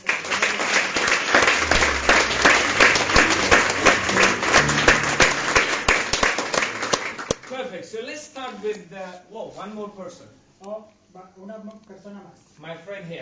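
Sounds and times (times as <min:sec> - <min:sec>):
audience applause at a bilingual gathering: 0:00.0 - 0:07.5
speech: 0:08.5 - 0:13.2.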